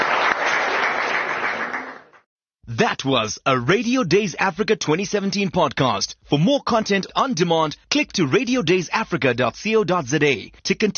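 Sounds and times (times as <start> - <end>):
audience applause: 0.0 - 2.2
speech: 2.8 - 10.9.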